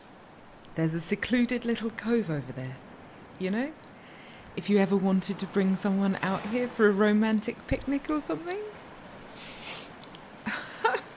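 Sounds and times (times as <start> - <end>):
speech: 0.8 - 3.9, 4.6 - 9.5
quick sniffing inhales: 9.3 - 9.9.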